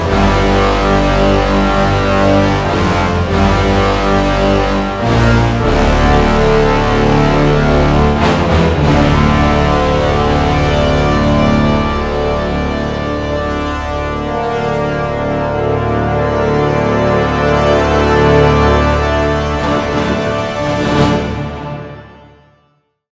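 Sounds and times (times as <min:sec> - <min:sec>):
brass ensemble playing epic music: 0:00.0 - 0:22.5.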